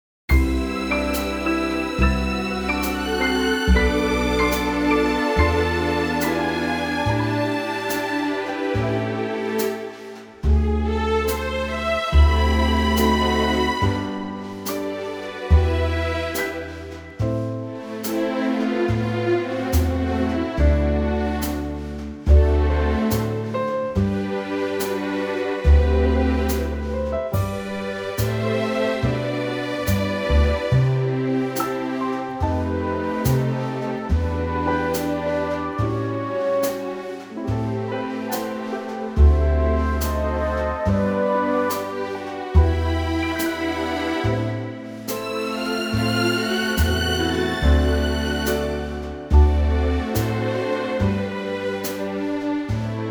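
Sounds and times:
orchestral music: 0:00.3 - 0:53.0.

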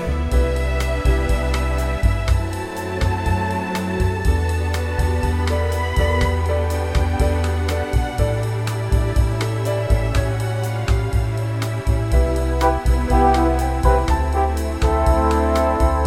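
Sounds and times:
orchestral bossa nova arrangement in G: 0:00.0 - 0:16.0.

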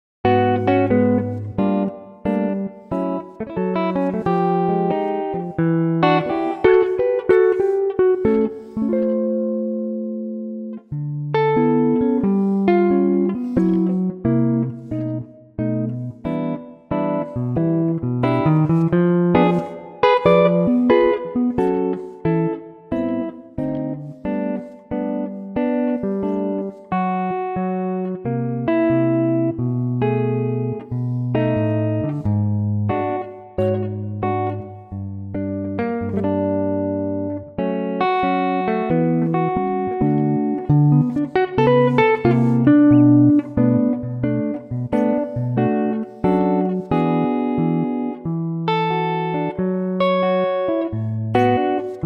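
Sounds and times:
guitar in D: 0:00.0 - 0:52.0.

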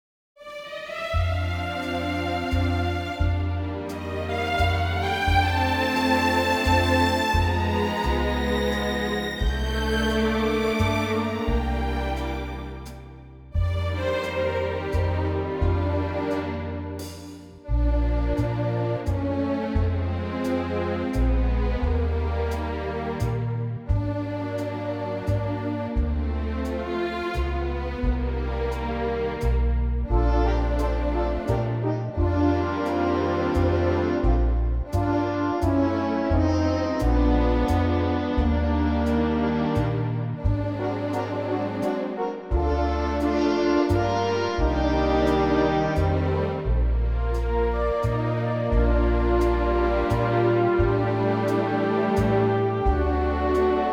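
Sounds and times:
orchestral music in B flat in three-four time: 0:00.4 - 0:53.9.

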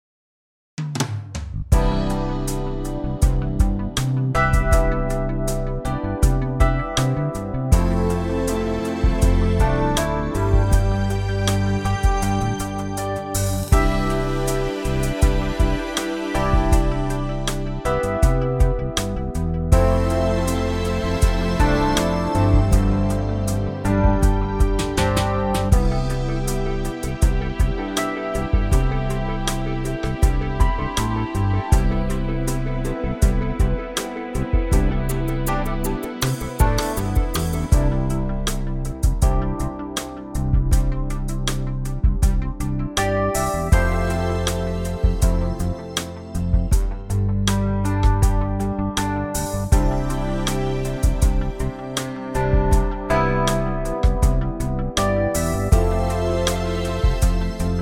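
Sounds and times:
backing track in C for male vocals: 0:01.7 - 0:57.8.

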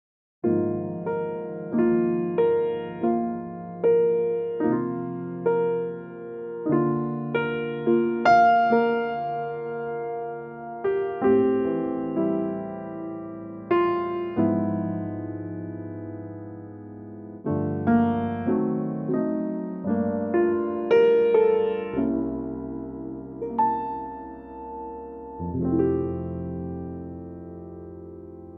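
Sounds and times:
piano note F: 0:00.4 - 0:28.5.

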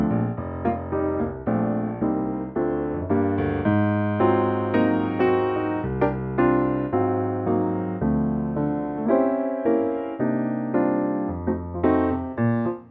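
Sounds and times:
bright piano-only arrangement of an American standard in B flat: 0:00.0 - 0:12.8.

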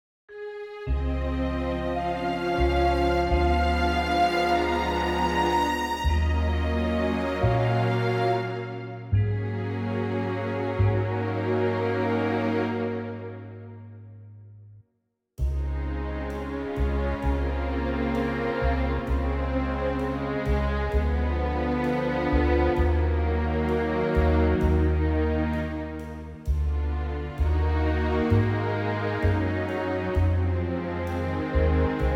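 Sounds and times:
orchestral music: 0:00.4 - 0:13.8, 0:15.4 - 0:32.1.

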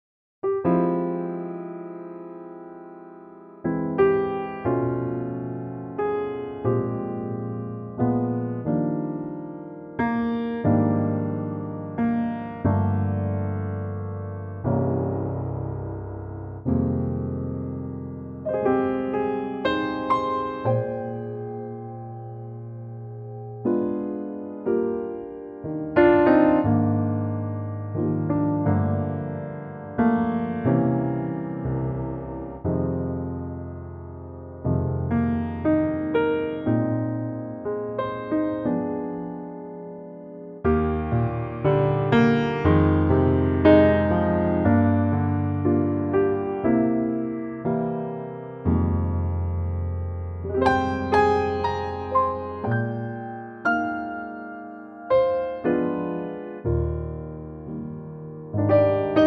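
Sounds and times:
piano track in E flat: 0:00.4 - 0:59.2.

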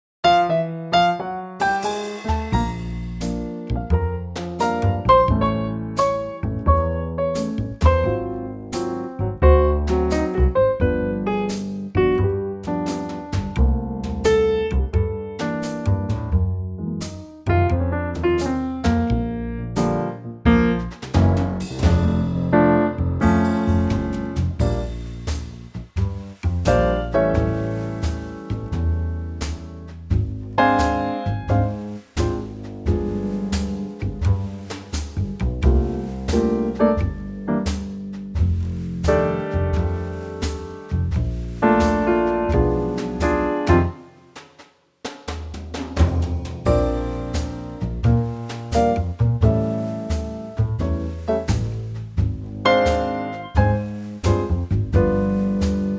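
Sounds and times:
instrumental trio in B-flat: 0:00.2 - 0:55.9.

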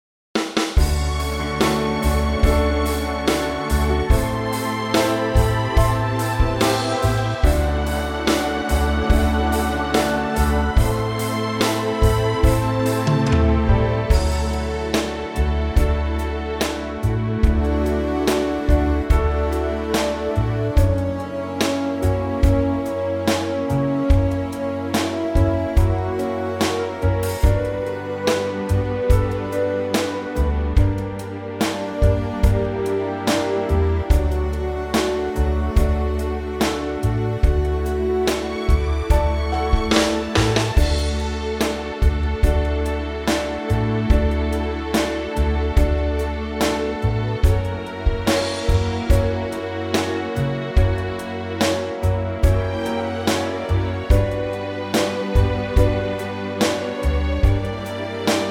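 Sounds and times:
orchestra playing in D: 0:00.6 - 0:58.5.

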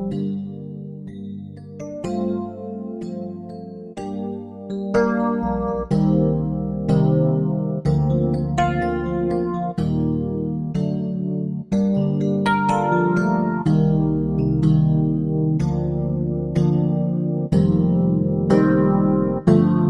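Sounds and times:
electric piano playing B flat to C: 0:00.0 - 0:19.8.

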